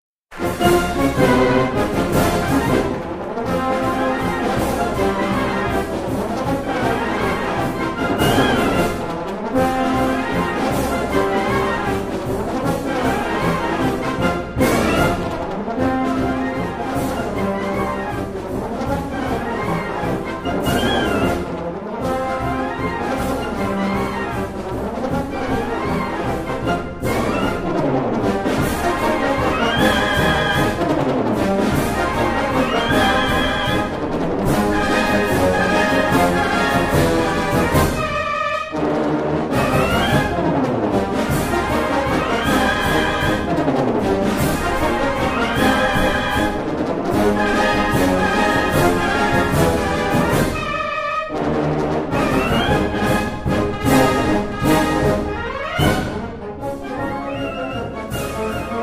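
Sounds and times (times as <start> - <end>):
military march: 0.3 - 58.8.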